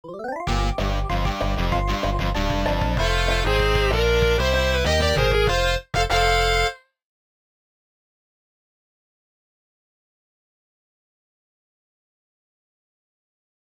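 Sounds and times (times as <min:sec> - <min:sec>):
desert outro music: 0:00.4 - 0:06.7.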